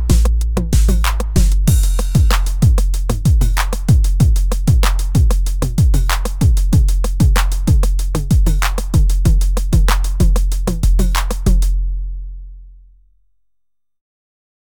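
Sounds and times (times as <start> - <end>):
909 drum machine boom: 0.0 - 11.8.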